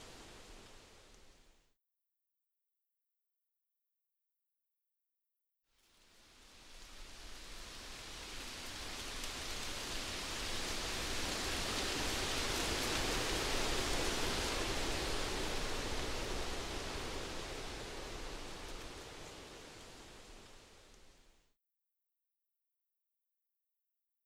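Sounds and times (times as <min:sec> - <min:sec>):
leaves blowing in the wind: 0:00.0 - 0:01.5, 0:06.0 - 0:21.3.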